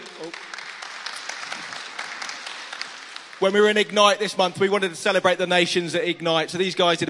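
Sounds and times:
crowd applause: 0:00.0 - 0:04.2
speech: 0:03.4 - 0:07.0.

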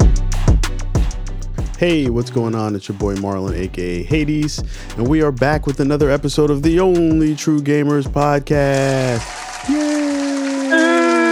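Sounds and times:
sustained pitched tones: 0:00.0 - 0:09.9
speech: 0:01.8 - 0:09.8
applause sound effect: 0:09.1 - 0:11.3.

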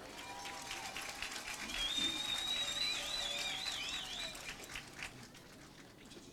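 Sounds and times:
crowd applause: 0:00.0 - 0:06.1
high whistles: 0:01.5 - 0:04.7.

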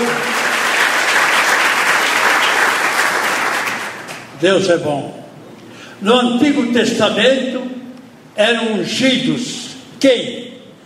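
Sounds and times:
audience applauding: 0:00.0 - 0:04.3
speech: 0:04.4 - 0:05.2, 0:06.0 - 0:07.7, 0:08.4 - 0:10.5.

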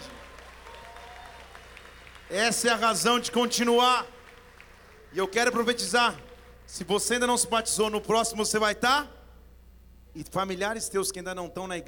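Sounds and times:
audience applause: 0:00.0 - 0:06.6
speech: 0:02.3 - 0:04.2, 0:05.1 - 0:09.2, 0:10.2 - 0:11.8.

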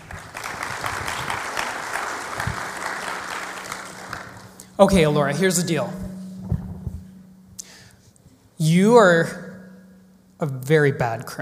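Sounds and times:
audience applauding: 0:00.0 - 0:04.8
speech: 0:04.8 - 0:06.0, 0:08.6 - 0:09.4, 0:10.4 - 0:11.3.

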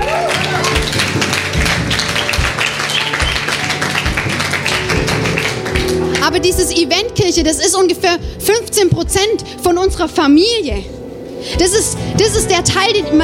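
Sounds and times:
audience clapping: 0:00.0 - 0:06.4
speech: 0:06.5 - 0:13.2.

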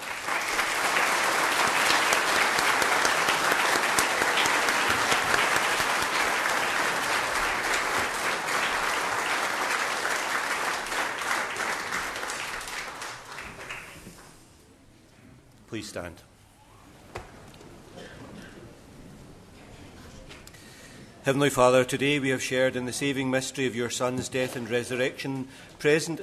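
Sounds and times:
audience applause: 0:00.0 - 0:14.4
speech: 0:15.8 - 0:16.3, 0:21.3 - 0:26.2.

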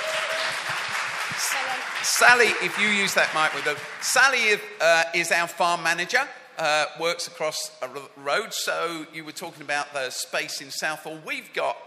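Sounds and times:
crowd applause: 0:00.0 - 0:04.6
speech: 0:01.4 - 0:11.8.

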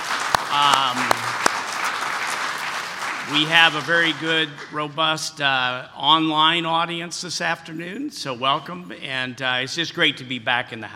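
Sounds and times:
audience applause inside the Rothko Chapel at the Óscar Romero Award ceremony: 0:00.0 - 0:05.2
speech: 0:00.5 - 0:01.0, 0:03.3 - 0:10.9.

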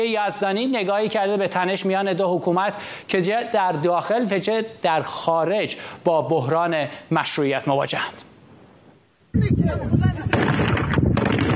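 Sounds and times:
speech: 0:00.0 - 0:08.3, 0:09.3 - 0:10.2
gunfire exchange at a border: 0:10.1 - 0:11.5.

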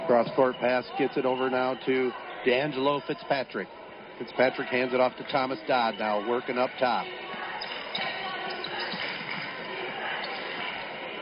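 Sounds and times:
speech: 0:00.1 - 0:07.3
basketball being dribbled on court during a game: 0:07.3 - 0:10.7.

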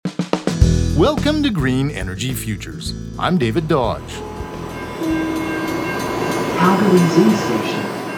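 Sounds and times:
speech: 0:01.0 - 0:04.3, 0:05.0 - 0:05.4, 0:06.6 - 0:07.8
Calgary C-Train light rail train rumble at a station: 0:01.0 - 0:08.1
C-Train horn-like tones: 0:01.9 - 0:07.9.

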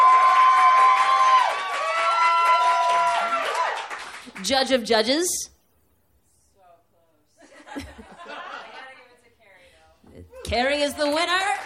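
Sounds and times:
audience clapping: 0:00.0 - 0:04.7, 0:11.0 - 0:11.6
speech: 0:04.4 - 0:05.5, 0:10.5 - 0:11.6
laughter: 0:07.4 - 0:09.0.

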